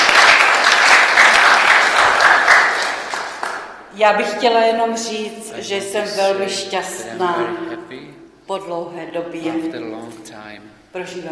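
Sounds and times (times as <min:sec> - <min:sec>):
audience clapping: 0:00.0 - 0:03.9
speech: 0:04.0 - 0:11.3.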